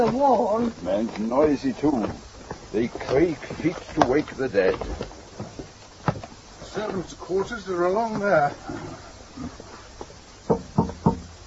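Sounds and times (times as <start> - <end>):
speech: 0.0 - 5.2, 6.8 - 9.6
knocking on a door: 10.5 - 11.3.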